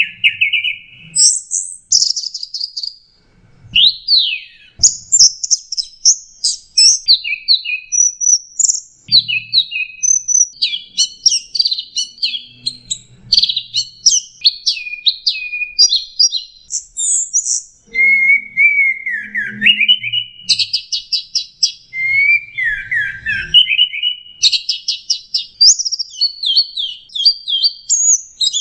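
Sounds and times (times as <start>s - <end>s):
bird singing high chirps, downslurred whistles and twittering notes: 0.0s - 3.0s, 3.8s - 28.5s.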